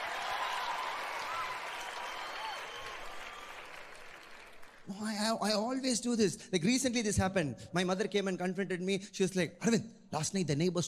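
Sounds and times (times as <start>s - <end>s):
audience clapping: 0.0s - 5.0s
speech: 4.9s - 10.8s.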